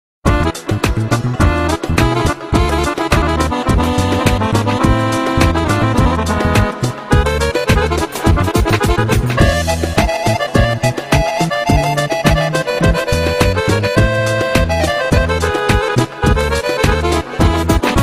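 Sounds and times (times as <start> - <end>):
Bosnian music: 0.2 - 18.0.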